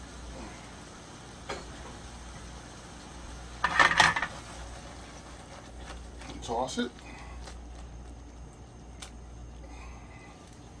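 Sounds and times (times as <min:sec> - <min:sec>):
gnocchi dropped into a pan with spicy sausage: 0:03.6 - 0:04.4
speech: 0:06.5 - 0:07.0.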